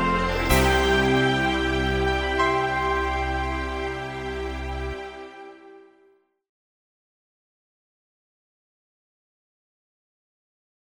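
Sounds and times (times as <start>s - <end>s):
easy listening and classical music: 0.0s - 6.0s.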